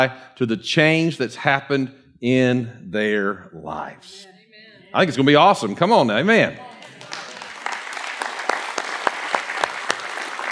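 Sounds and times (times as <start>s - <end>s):
speech: 0.0s - 6.7s
crowd applauding: 6.6s - 10.5s.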